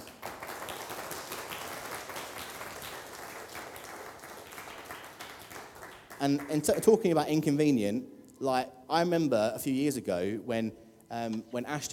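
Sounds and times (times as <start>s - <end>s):
audience applause: 0.0s - 7.0s
speech: 6.2s - 11.9s.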